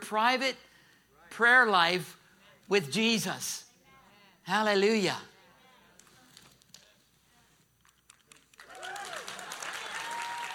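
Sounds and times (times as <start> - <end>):
speech: 0.1 - 0.7, 1.3 - 3.7, 4.5 - 5.3
audience applause: 8.3 - 10.5.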